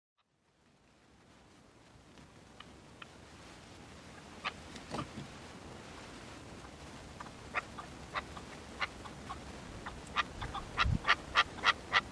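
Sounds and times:
partridge or tinamou song: 6.6s - 12.1s.

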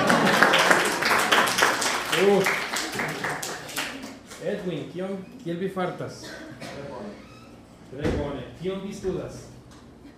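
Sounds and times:
applause in a class: 0.0s - 4.4s
speech: 4.9s - 7.3s, 7.9s - 9.5s.

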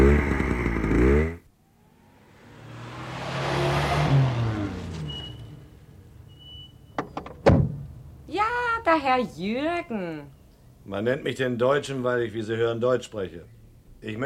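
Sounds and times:
motorcycle engine running, then switched off: 0.0s - 2.9s
rushing swell: 1.6s - 5.4s
speech: 8.9s - 14.2s.

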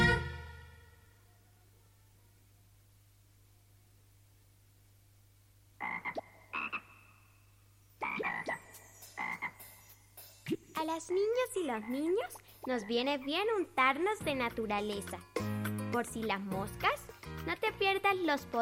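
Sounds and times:
frog croaking: 5.8s - 10.7s, 11.7s - 13.1s
speech: 10.8s - 15.3s, 16.0s - 18.6s.

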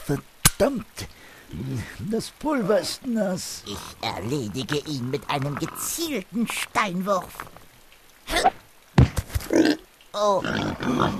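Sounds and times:
speech: 0.1s - 7.6s, 9.6s - 11.1s
pigs grunting as they charge: 1.5s - 6.6s, 9.4s - 11.1s.

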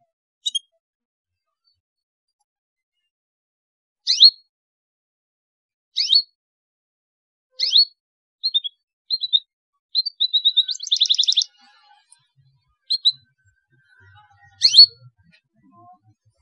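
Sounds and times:
Belgian canary singing: 0.4s - 0.7s, 4.1s - 4.4s, 6.0s - 6.3s, 7.5s - 16.4s.

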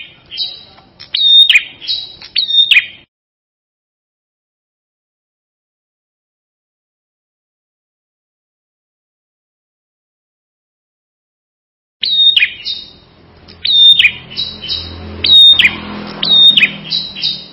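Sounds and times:
Ashy tailorbird singing: 0.0s - 3.1s, 12.0s - 17.5s.

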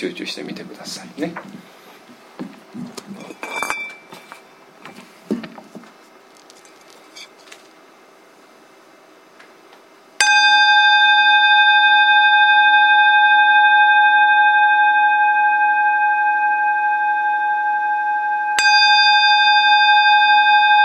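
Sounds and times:
speech: 0.0s - 1.8s
meditation bell ringing: 10.2s - 20.8s.

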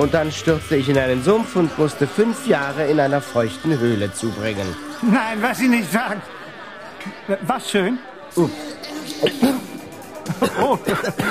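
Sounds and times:
speech: 0.0s - 6.4s, 7.0s - 9.6s, 10.6s - 11.2s
laughter: 0.0s - 11.2s
cough: 8.8s - 11.2s.

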